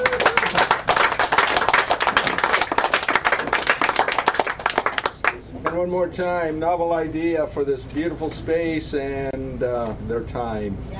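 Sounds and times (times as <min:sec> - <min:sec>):
audience applause: 0:00.0 - 0:05.4
speech: 0:05.8 - 0:10.9.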